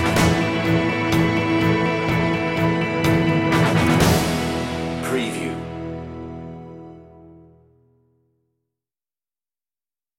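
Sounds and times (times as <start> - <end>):
underscore music: 0.0 - 7.9.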